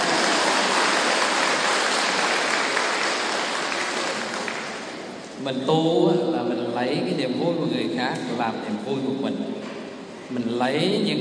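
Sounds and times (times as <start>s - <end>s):
audience clapping: 0.0s - 5.2s
speech: 5.4s - 9.7s, 10.3s - 11.1s.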